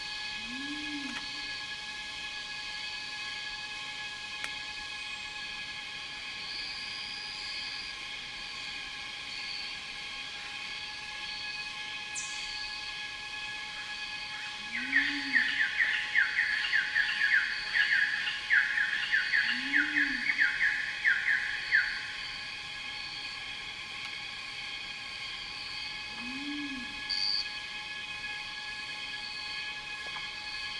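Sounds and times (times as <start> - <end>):
cicadas droning in a rainforest: 0.0 - 30.7.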